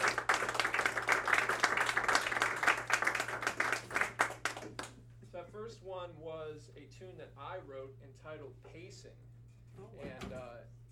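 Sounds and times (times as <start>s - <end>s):
crowd applauding: 0.0s - 5.0s
speech: 6.0s - 10.8s.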